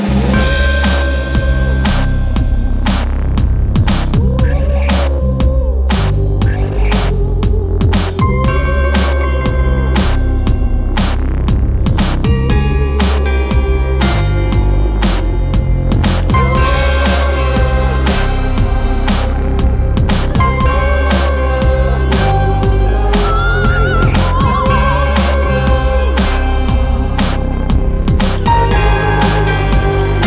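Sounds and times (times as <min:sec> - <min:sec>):
pop theme music: 0:00.1 - 0:30.2.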